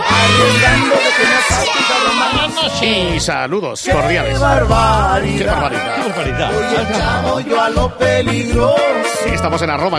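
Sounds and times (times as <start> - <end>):
crowd of children shouting and cheering with jubilation: 0.0 - 3.0
speech: 0.2 - 9.9.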